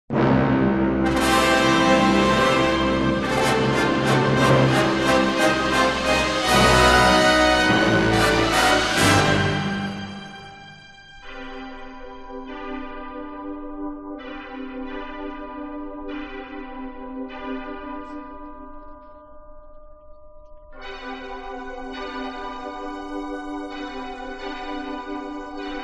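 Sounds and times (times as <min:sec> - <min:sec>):
fanfare in C: 0:00.2 - 0:11.0.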